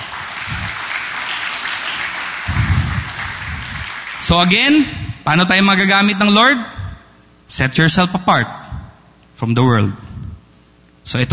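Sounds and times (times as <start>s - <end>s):
church congregation applauding: 0.0s - 4.8s
speech: 4.3s - 6.8s, 7.5s - 8.7s, 9.4s - 10.1s, 11.1s - 11.3s.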